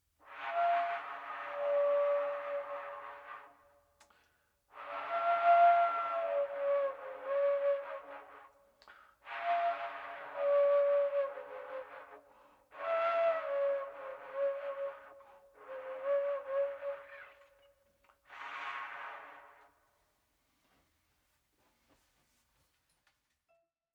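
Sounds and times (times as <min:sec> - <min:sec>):
pukaea nui wooden trumpet: 0:00.2 - 0:03.8, 0:04.7 - 0:19.8.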